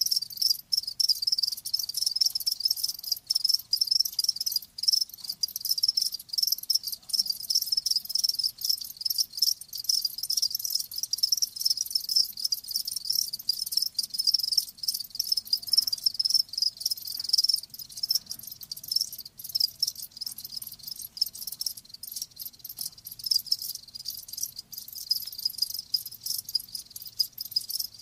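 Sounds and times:
crickets chirping: 0.0 - 28.0.

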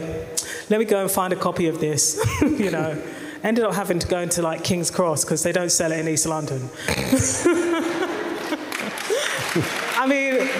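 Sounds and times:
speech: 0.0 - 7.9, 9.6 - 10.5
laughter: 7.1 - 10.0
audience clapping: 7.9 - 10.5.

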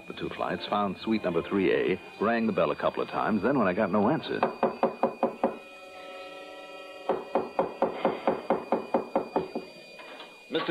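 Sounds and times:
speech: 0.1 - 4.6
pounding on a door: 4.4 - 5.6, 7.1 - 9.7.

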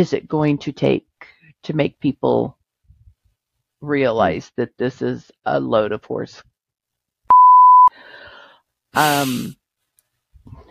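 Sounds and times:
speech: 0.0 - 2.6, 3.8 - 6.5, 8.9 - 9.6, 10.4 - 10.6
censor bleep over speech: 7.3 - 7.9.

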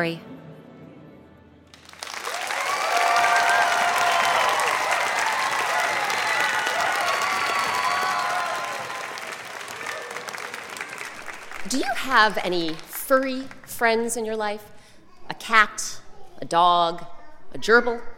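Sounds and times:
speech: 0.0 - 0.3, 11.7 - 14.8, 15.5 - 18.1
live audience of children and adults applauding: 1.7 - 13.8
excited high voices: 2.5 - 10.5.

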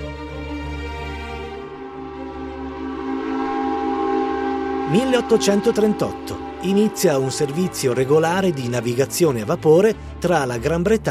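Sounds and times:
steam locomotive rumbling: 1.1 - 11.1
steam train whistle: 1.7 - 10.1
speech: 4.9 - 11.1.

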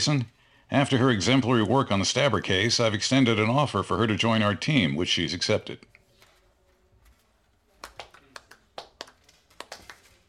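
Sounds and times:
speech: 0.0 - 5.9
mocking golf clap: 7.8 - 10.2.

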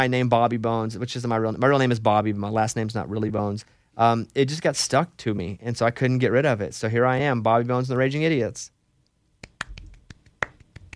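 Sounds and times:
speech: 0.0 - 8.8
single hand clap: 9.4 - 10.9.

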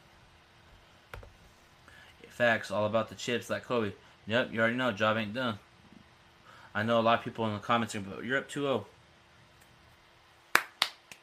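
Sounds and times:
speech: 2.4 - 5.7, 6.8 - 8.9
golf clap soft hand claps: 10.5 - 11.2.

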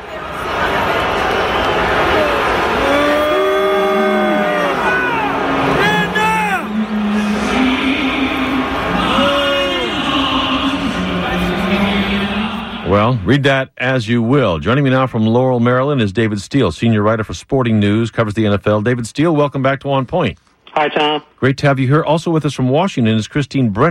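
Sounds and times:
New England Patriots fans booing in stadium: 0.0 - 12.9
speech: 13.3 - 23.8.

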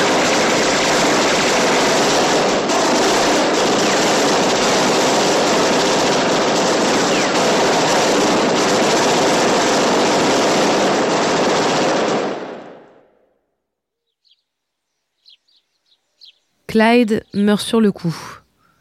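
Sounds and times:
gunfire riddling a luxury Ford car with bullets: 0.0 - 12.8
speech: 16.8 - 18.4.

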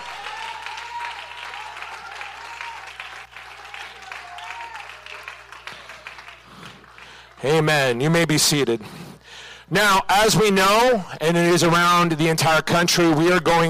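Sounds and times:
audience hand clapping in praise: 0.0 - 7.4
speech: 7.4 - 9.0, 9.7 - 13.6.

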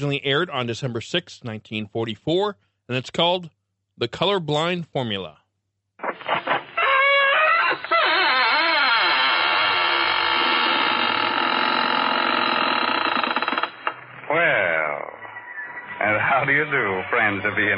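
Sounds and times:
speech: 0.0 - 5.4, 16.0 - 17.7
squeaking door opening: 6.0 - 14.1, 15.1 - 17.4.

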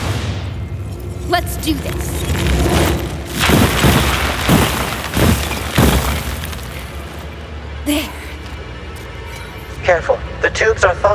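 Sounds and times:
speech: 1.3 - 2.8, 7.9 - 8.1, 9.9 - 11.1
block of ice shattering: 1.3 - 7.4.

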